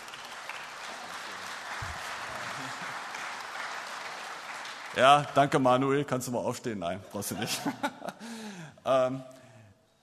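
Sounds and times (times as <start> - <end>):
audience applause: 0.0 - 5.6
speech: 5.0 - 9.4
laughter: 7.2 - 8.4.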